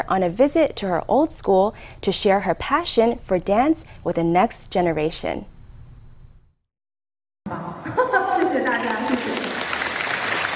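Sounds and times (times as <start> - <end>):
speech: 0.0 - 5.5
children clapping in school hall: 8.3 - 10.5.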